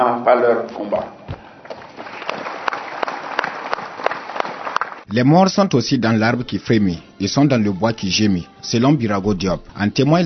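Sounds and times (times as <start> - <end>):
speech: 0.0 - 1.2, 5.1 - 10.2
audience applause: 1.7 - 5.1.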